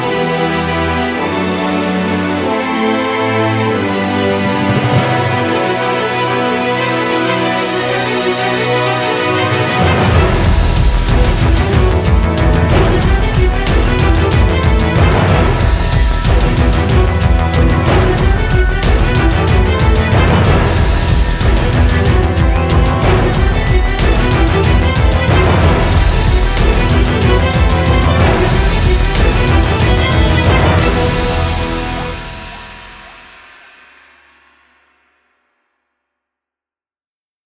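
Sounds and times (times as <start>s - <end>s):
soundtrack music: 0.0s - 34.1s.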